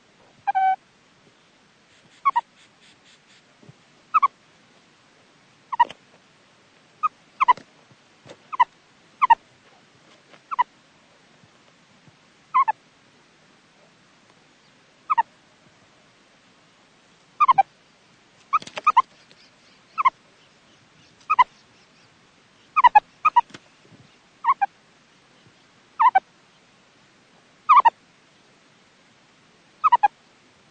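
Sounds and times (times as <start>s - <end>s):
baby meerkat calling: 0.4s - 0.8s, 2.1s - 2.5s, 4.1s - 4.3s, 5.7s - 5.9s, 7.0s - 7.6s, 8.5s - 9.4s, 10.5s - 10.7s, 12.5s - 12.8s, 15.1s - 15.3s, 17.4s - 17.7s, 18.5s - 19.0s, 20.0s - 20.2s, 21.3s - 21.5s, 22.8s - 23.5s, 24.4s - 24.7s, 26.0s - 26.2s, 27.7s - 27.9s, 29.8s - 30.1s.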